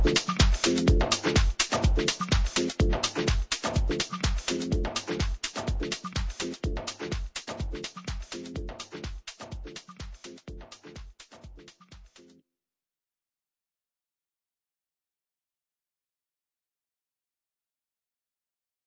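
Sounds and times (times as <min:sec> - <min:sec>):
summer tech music: 0:00.0 - 0:12.4.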